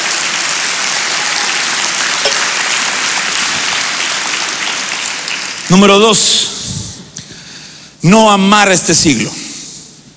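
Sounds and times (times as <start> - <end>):
audience clapping hands: 0.0 - 6.4
speech: 5.7 - 6.5, 8.0 - 9.4.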